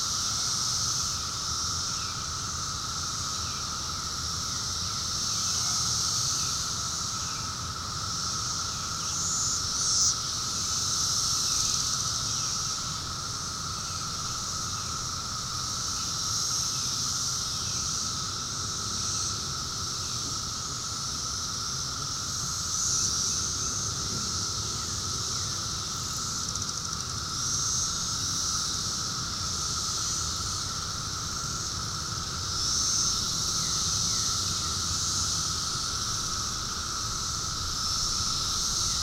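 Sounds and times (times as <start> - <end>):
Brood V periodical cicadas: 0.0 - 39.0.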